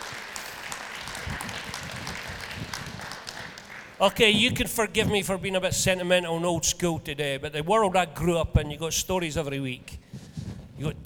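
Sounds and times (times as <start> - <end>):
audience applauding to welcome guests: 0.0 - 4.6
speech: 4.0 - 10.0, 10.8 - 11.0.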